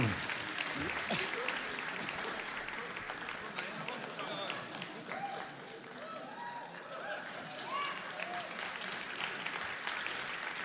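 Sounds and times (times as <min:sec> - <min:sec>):
faint voices in the crowd: 0:00.0 - 0:00.3
audience applause for a guest: 0:00.0 - 0:10.6.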